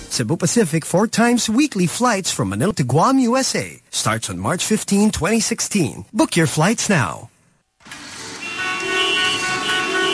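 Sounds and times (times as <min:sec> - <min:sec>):
speech: 0:00.1 - 0:08.0
steady road traffic: 0:07.8 - 0:10.1
overlapping car horns honking: 0:08.2 - 0:10.1.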